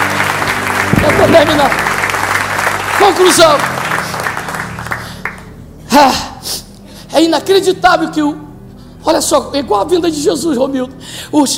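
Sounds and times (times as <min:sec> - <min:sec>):
audience applause: 0:00.0 - 0:05.6
speech: 0:01.2 - 0:01.9, 0:03.0 - 0:03.8, 0:05.9 - 0:06.6, 0:07.2 - 0:08.4, 0:09.0 - 0:11.5.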